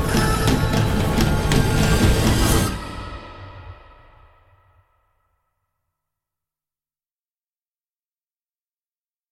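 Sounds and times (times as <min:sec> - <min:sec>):
instrumental music: 0:00.0 - 0:03.4.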